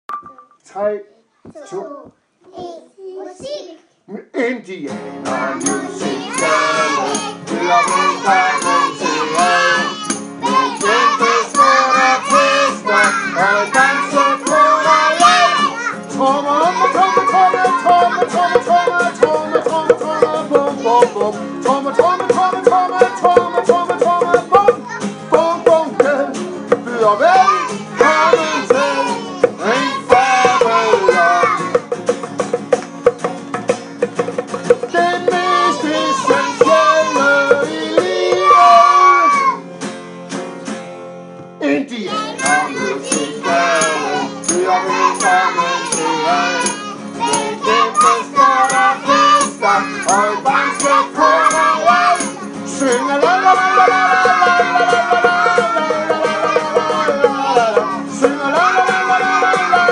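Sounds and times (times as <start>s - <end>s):
indie music intro: 4.9s - 59.9s.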